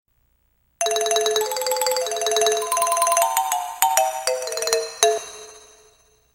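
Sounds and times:
marimba notes: 0:00.8 - 0:05.9.

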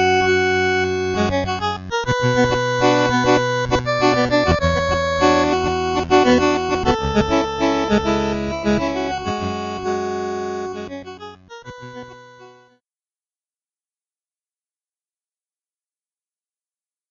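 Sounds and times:
game level music: 0:00.0 - 0:12.7.

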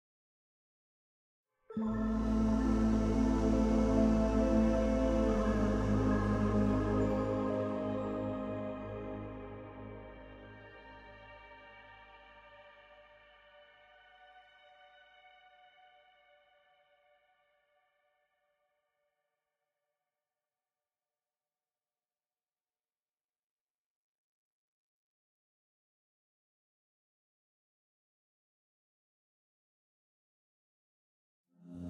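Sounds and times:
cave music: 0:01.8 - 0:12.5.

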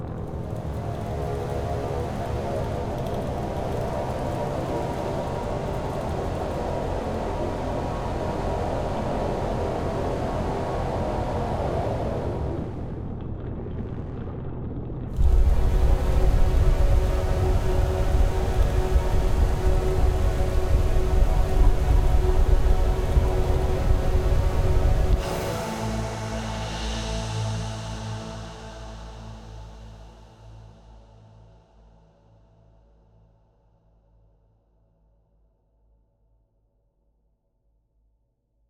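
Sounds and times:
city music: 0:00.1 - 0:13.0, 0:15.2 - 0:29.5.

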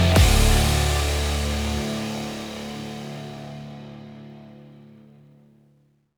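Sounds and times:
forest fighting music: 0:00.0 - 0:03.5.

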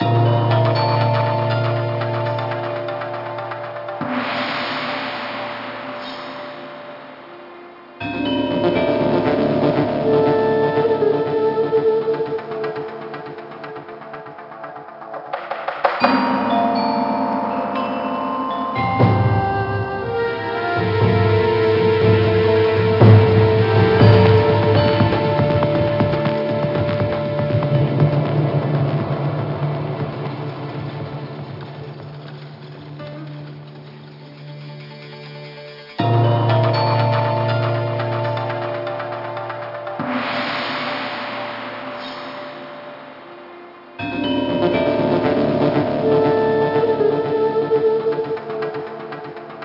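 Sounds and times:
level music: 0:00.0 - 0:49.6.

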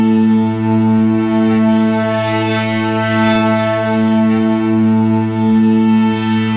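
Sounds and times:
temple music chord: 0:00.2 - 0:06.4.

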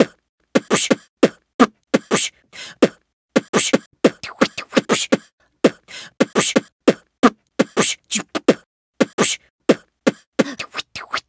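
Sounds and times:
beatbox loop: 0:00.0 - 0:11.2.

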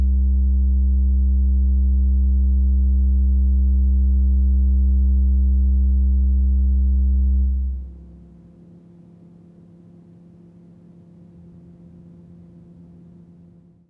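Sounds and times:
bass: 0:00.0 - 0:08.4.

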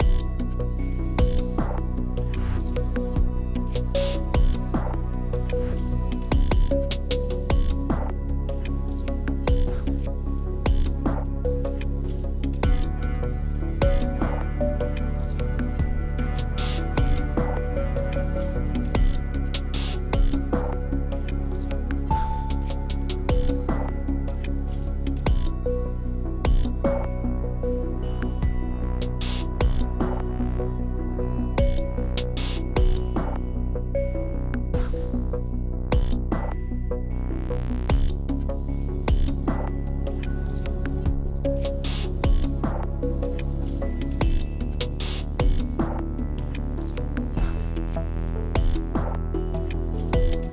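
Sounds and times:
eight-channel exploration music: 0:00.0 - 0:50.5.

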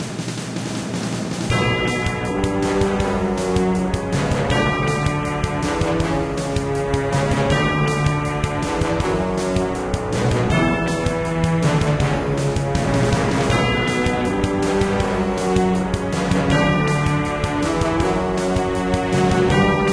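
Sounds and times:
tunnel battle theme music: 0:00.0 - 0:19.9.

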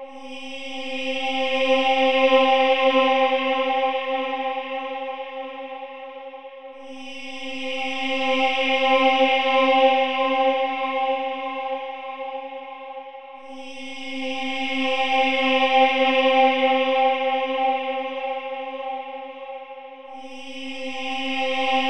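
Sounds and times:
music: 0:00.0 - 0:21.8.

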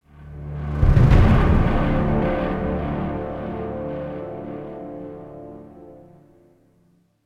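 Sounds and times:
low clear action music: 0:00.0 - 0:06.6.

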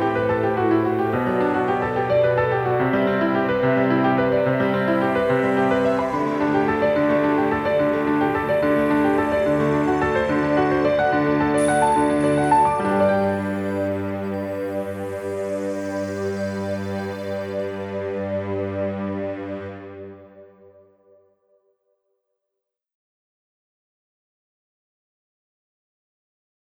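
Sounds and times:
piano melody: 0:00.0 - 0:20.9.

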